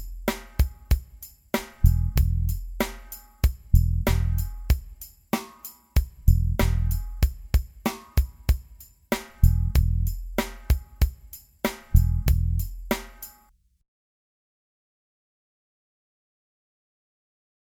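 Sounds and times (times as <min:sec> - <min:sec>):
rhythm: 0:00.0 - 0:13.5.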